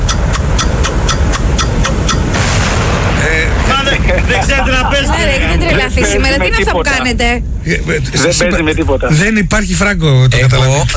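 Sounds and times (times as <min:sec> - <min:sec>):
bomb sound effect ticking in a TV game show: 0:00.0 - 0:02.5
dense noisy background: 0:00.0 - 0:10.9
bomb explosion sound effect in a TV game show: 0:02.2 - 0:05.8
laughter: 0:03.7 - 0:06.8
speech: 0:04.6 - 0:10.9.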